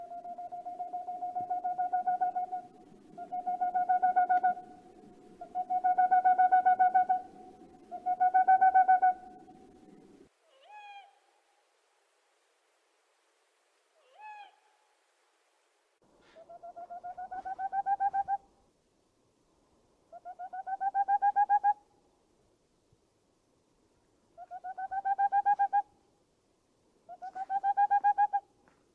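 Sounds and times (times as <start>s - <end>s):
boreal owl hooting: 0.0s - 9.6s, 10.4s - 11.3s, 14.0s - 14.8s, 16.3s - 18.4s, 20.1s - 21.8s, 24.4s - 25.9s, 27.1s - 28.5s.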